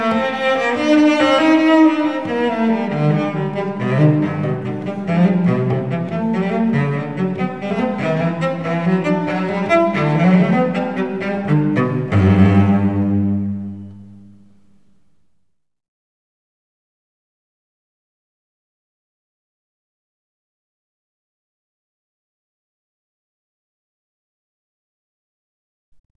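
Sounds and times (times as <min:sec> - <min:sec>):
unaccompanied cello suite: 0:00.0 - 0:15.2.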